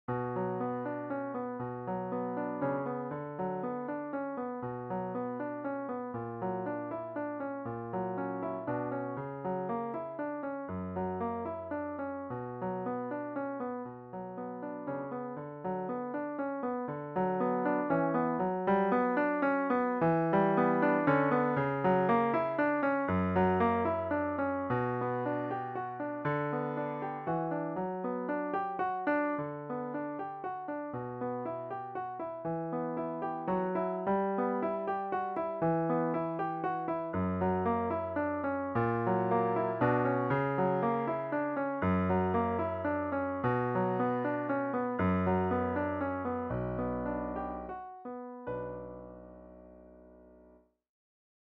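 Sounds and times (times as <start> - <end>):
prelude in B minor: 0.1 - 50.6.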